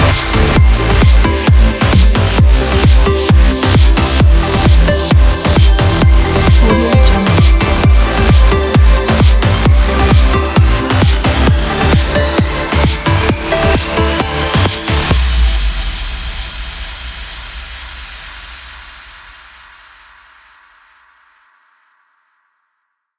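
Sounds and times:
power bass: 0.0 - 15.5.

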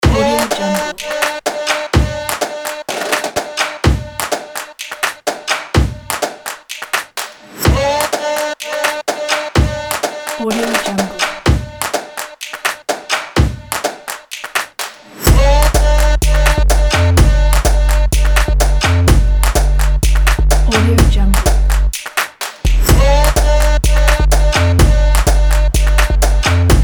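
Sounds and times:
fashion stomp beat: 0.0 - 26.8.

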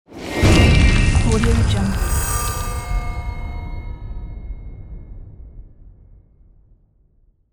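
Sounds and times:
magical spell effect: 0.4 - 4.8.

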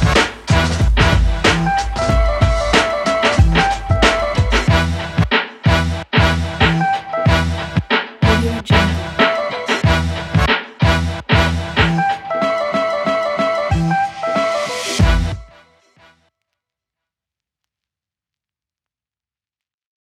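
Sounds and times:
funky hip hop promo music: 0.0 - 15.5.

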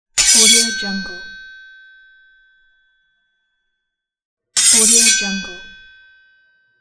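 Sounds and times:
sword being drawn: 0.2 - 0.8, 4.6 - 5.7.

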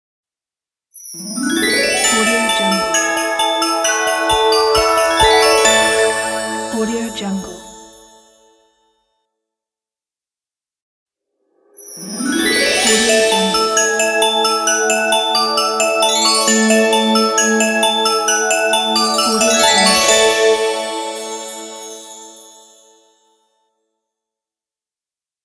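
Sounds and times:
Christmas logo jingle: 1.1 - 8.6, 11.7 - 23.2.

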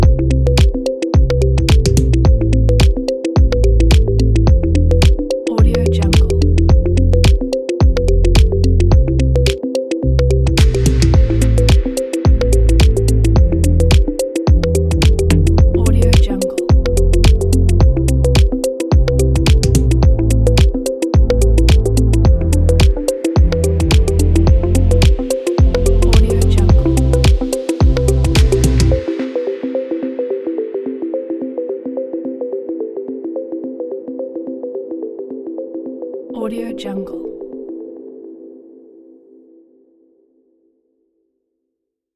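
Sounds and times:
futuristic beat: 0.0 - 9.9, 10.5 - 31.1.

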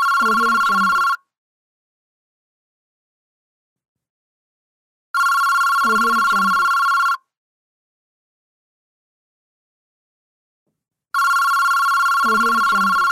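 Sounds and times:
phone sound effects: 0.1 - 1.2, 5.8 - 7.1, 11.2 - 13.0.

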